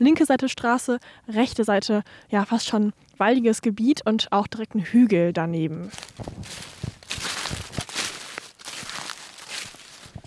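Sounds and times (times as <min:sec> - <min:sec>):
speech: 0:00.0 - 0:07.3
footsteps walking outdoors along a fence: 0:05.8 - 0:10.2.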